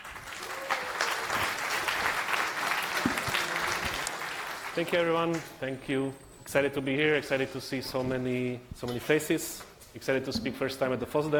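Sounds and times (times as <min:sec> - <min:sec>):
crowd clapping: 0:00.0 - 0:05.6
speech: 0:04.8 - 0:11.3.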